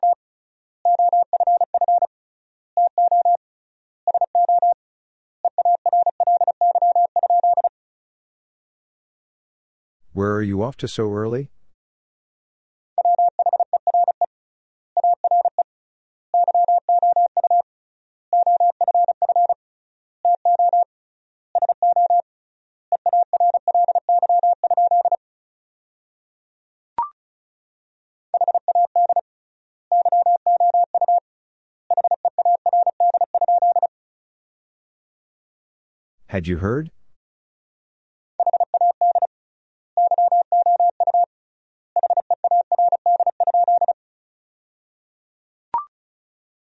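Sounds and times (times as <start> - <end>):
Morse code tones at about 35 words per minute: 0.9 - 2.1, 2.9 - 3.4, 4.1 - 4.8, 5.5 - 7.7, 13.0 - 14.2, 15.0 - 15.6, 16.4 - 17.6, 18.4 - 19.6, 20.3 - 20.8, 21.6 - 22.2, 23.0 - 25.2, 28.4 - 29.2, 29.9 - 31.2, 31.9 - 33.9, 38.4 - 39.3, 40.0 - 41.3, 42.0 - 44.0
speech: 10.2 - 11.5, 36.4 - 37.0.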